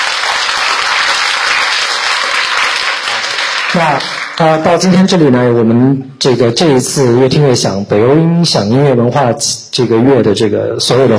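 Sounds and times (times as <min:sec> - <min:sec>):
audience applause: 0:00.0 - 0:04.6
speech: 0:03.8 - 0:11.1.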